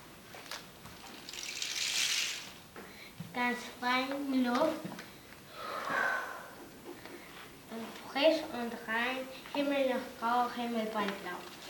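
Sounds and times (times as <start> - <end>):
faint rain: 0.4 - 2.6
speech: 3.4 - 5.0, 8.1 - 11.6.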